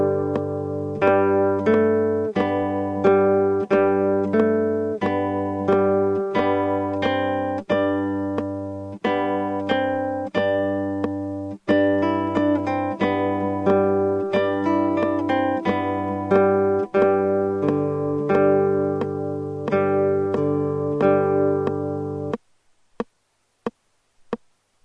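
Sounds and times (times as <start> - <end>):
solo guitar in G: 0.0 - 24.4.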